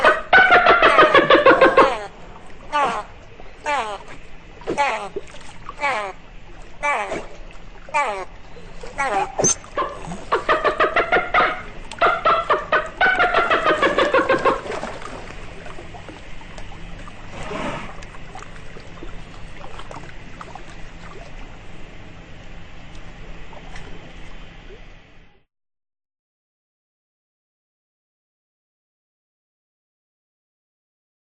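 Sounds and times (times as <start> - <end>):
dolphin calls and squeaks: 0.0 - 2.1, 2.7 - 5.2, 5.8 - 6.2, 6.8 - 7.3, 7.9 - 14.9.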